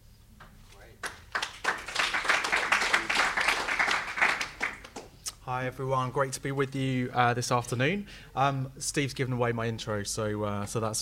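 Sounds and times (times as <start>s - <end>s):
crowd applauding: 1.0s - 5.2s
speech: 5.5s - 11.0s.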